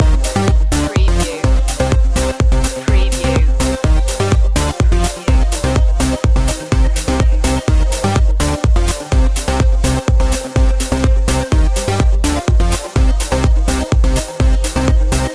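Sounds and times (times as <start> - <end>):
Swedish trance music loop: 0.0 - 15.3.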